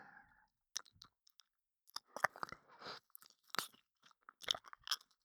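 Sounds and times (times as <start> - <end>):
ear licking: 1.9 - 5.2.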